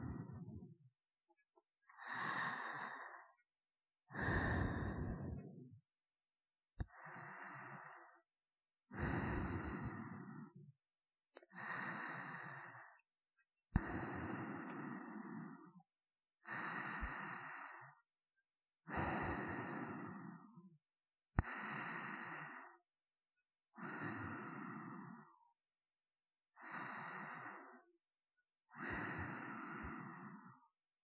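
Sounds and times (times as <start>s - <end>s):
person breathing in sleep: 0.0s - 0.8s, 1.9s - 3.4s, 4.1s - 5.8s, 6.8s - 8.3s, 8.9s - 10.6s, 11.5s - 13.0s, 13.8s - 15.8s, 16.4s - 18.0s, 18.9s - 20.6s, 21.4s - 22.9s, 23.8s - 25.5s, 26.5s - 27.9s, 28.7s - 30.8s.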